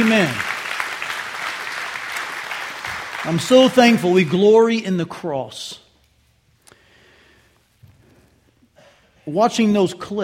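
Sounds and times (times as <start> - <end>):
audience clapping hands: 0.0 - 4.6
speech: 0.1 - 0.4, 3.2 - 5.8, 9.3 - 10.2.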